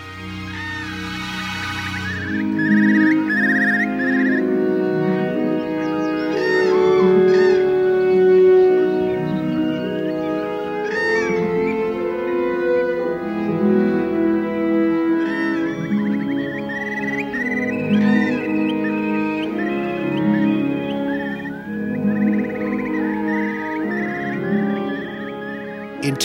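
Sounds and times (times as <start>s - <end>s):
sustained orchestral chords: 0.0s - 16.5s, 25.8s - 26.2s
recorded bird chirps and trills: 0.0s - 26.2s.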